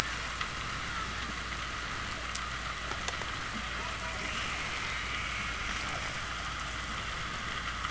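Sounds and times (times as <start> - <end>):
Orcasound hydrophone underwater sound: 0.0 - 7.8.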